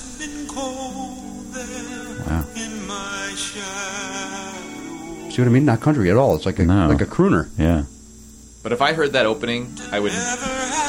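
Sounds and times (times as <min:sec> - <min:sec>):
speech: 0:00.2 - 0:08.0, 0:08.6 - 0:10.8
slide guitar: 0:01.0 - 0:07.9, 0:09.1 - 0:10.8.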